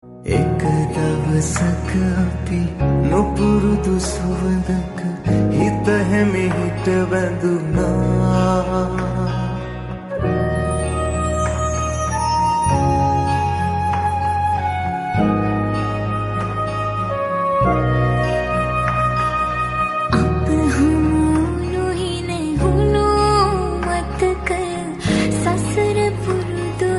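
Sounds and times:
Sinhala song: 0:00.3 - 0:26.9.

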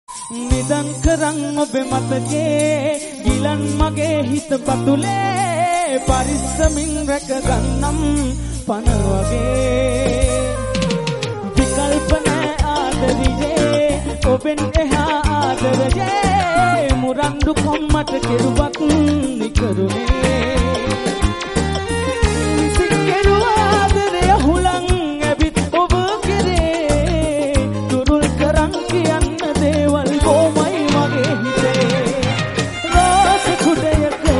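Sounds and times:
Bengali romantic song: 0:00.1 - 0:34.3.

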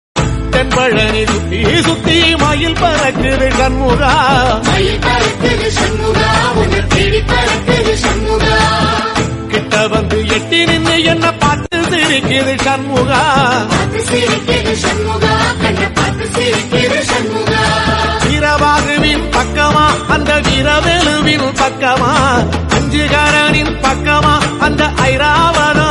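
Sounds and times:
Bhakti devotional music: 0:00.2 - 0:25.9.

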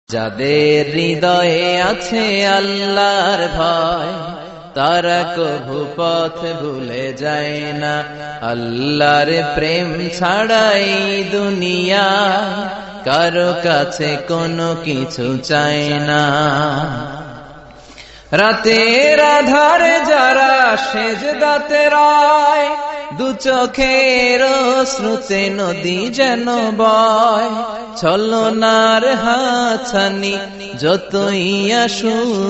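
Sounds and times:
islamic song: 0:00.0 - 0:32.4.

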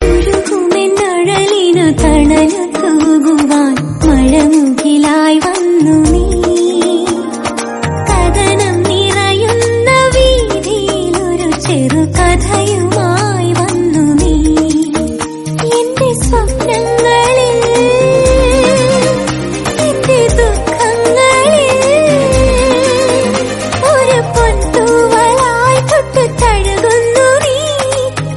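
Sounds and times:
song: 0:00.0 - 0:28.3.

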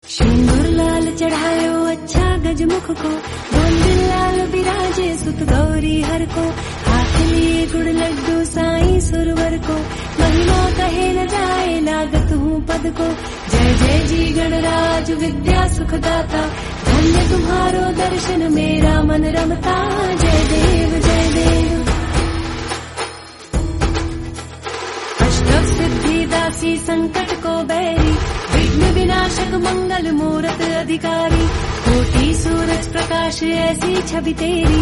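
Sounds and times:
woman singing devotional song: 0:00.1 - 0:22.4, 0:25.2 - 0:34.7.

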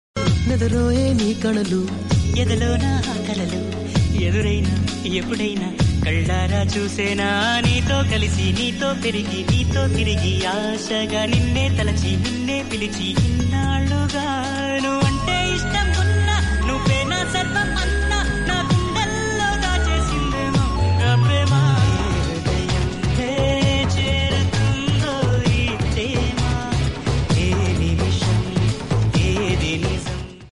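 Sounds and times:
movie song: 0:00.5 - 0:30.2.

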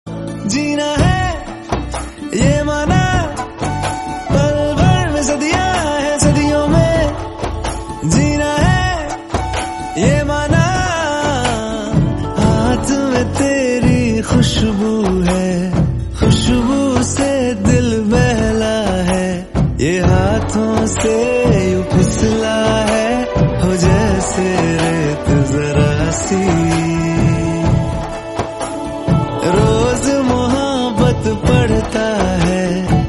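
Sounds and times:
Tamil background music: 0:00.1 - 0:33.0.

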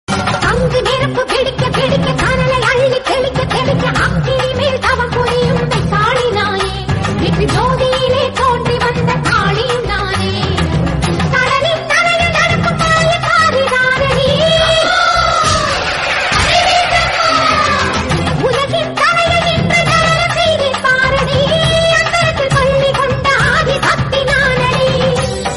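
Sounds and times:
background music: 0:00.1 - 0:25.5.

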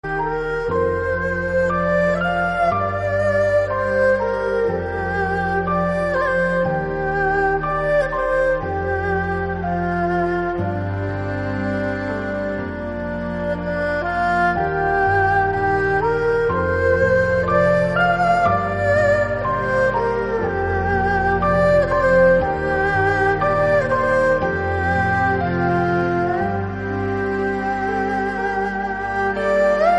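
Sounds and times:
erhu: 0:00.0 - 0:29.9.

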